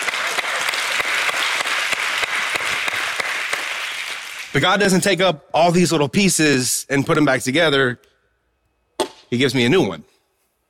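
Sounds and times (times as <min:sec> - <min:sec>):
audience applause: 0:00.0 - 0:04.5
speech: 0:04.6 - 0:08.1, 0:09.3 - 0:10.1.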